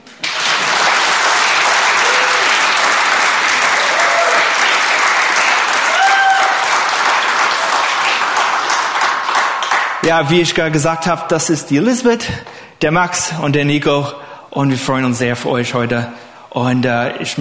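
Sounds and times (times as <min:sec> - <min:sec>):
audience clapping: 0:00.0 - 0:10.3
speech: 0:10.1 - 0:17.3.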